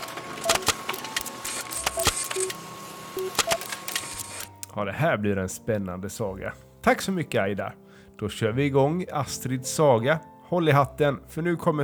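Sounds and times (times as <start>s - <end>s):
printer printing a page: 0.0s - 4.5s
speech: 4.8s - 11.8s.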